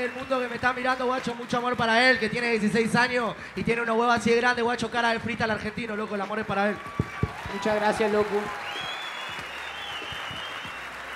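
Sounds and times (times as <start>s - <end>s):
audience applause: 0.0s - 2.8s, 5.9s - 11.1s
speech: 0.0s - 8.7s.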